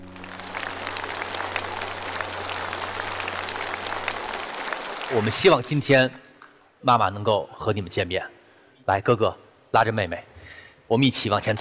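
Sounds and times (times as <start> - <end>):
audience applause: 0.0 - 6.5
speech: 5.1 - 6.2, 6.8 - 10.3, 10.9 - 11.5.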